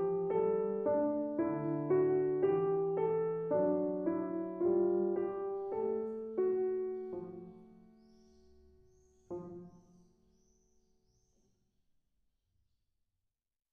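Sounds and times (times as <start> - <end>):
beginner piano piece: 0.0 - 10.8.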